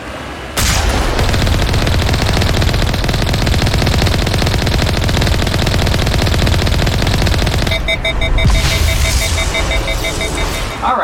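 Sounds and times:
rapid weapon fire at a Colossus in a video game: 0.6 - 10.8
pulsing electronic beep: 3.2 - 10.9.

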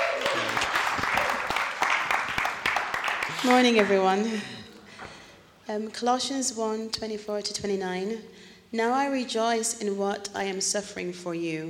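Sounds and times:
audience applause: 0.0 - 4.0
speech: 3.4 - 4.6, 5.7 - 11.6.

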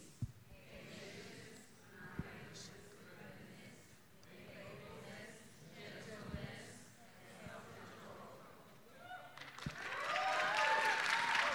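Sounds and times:
audience applause: 9.1 - 11.5.

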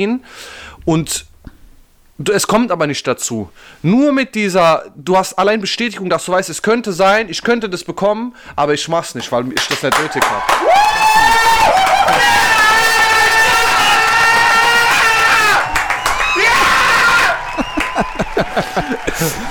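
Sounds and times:
speech: 0.0 - 1.3, 2.2 - 11.0
excited yells: 10.0 - 19.4
crowd cheering and screaming: 10.1 - 19.4
bursts of laughter: 17.2 - 19.4.

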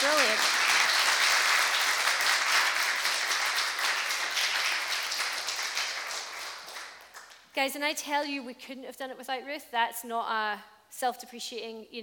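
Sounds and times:
audience applause: 0.0 - 7.4
speech: 7.6 - 12.0.

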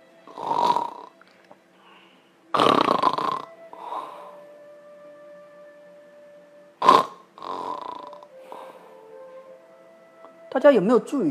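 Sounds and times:
person imitating heavy irregular snoring: 0.3 - 1.1, 2.6 - 3.5, 6.8 - 8.3
speech: 10.6 - 11.2.

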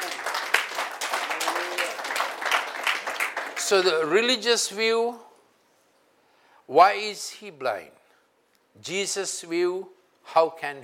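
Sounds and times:
audience clapping: 0.0 - 4.2
speech: 3.7 - 5.3, 6.7 - 8.0, 8.8 - 10.8.

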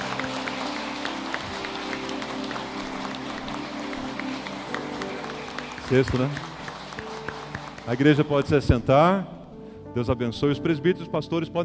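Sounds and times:
audience clapping to welcome people: 0.0 - 9.2
speech: 5.9 - 6.5, 7.9 - 9.4, 10.0 - 11.6.

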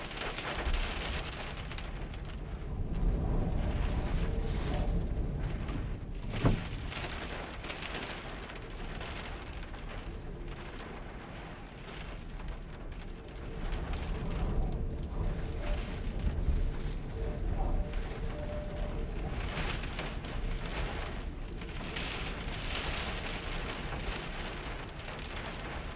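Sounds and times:
Winter Storm Elin wind and rain heard from a van in the UK: 0.0 - 25.9.

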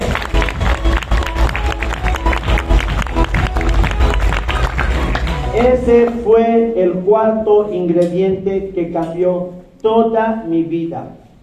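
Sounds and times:
audience applause: 0.0 - 5.7
speech: 5.6 - 11.2.

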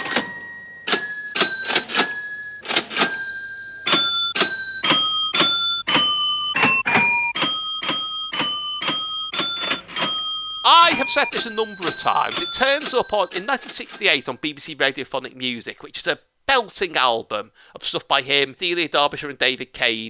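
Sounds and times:
tape loops of a till being rung up, opened, closed and slammed: 0.0 - 14.4
speech: 11.1 - 20.0.

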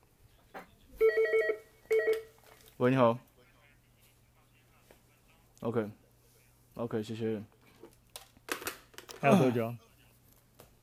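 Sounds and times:
telephone ringing with electronic warble: 1.0 - 2.3
speech: 2.8 - 3.3, 5.6 - 6.0, 6.8 - 7.6, 9.2 - 9.8.

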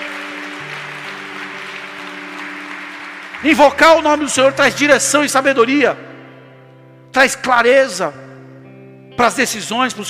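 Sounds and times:
audience applause: 0.0 - 4.7
speech: 3.4 - 6.1, 7.2 - 8.3, 9.2 - 10.0.

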